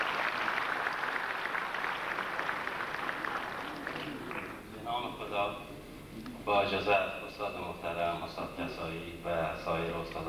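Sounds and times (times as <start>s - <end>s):
audience applause: 0.0s - 4.7s
speech: 6.5s - 10.2s.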